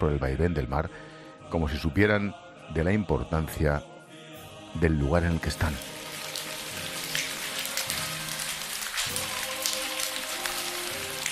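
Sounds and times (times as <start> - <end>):
speech: 0.0 - 3.9, 4.7 - 5.9
steady rain falling: 5.6 - 11.3.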